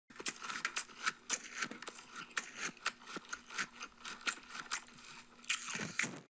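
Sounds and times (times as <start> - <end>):
crunch: 0.1 - 6.3.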